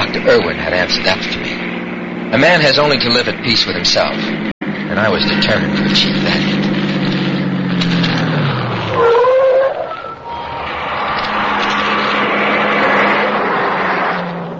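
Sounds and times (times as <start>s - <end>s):
car driving on past after a stop: 0.0s - 14.5s
speech: 0.2s - 1.4s, 2.3s - 6.6s
brief whine: 8.9s - 12.7s.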